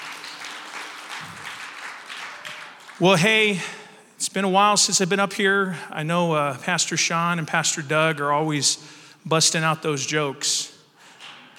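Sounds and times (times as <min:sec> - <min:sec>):
church congregation applauding: 0:00.0 - 0:03.8
speech: 0:03.0 - 0:10.7.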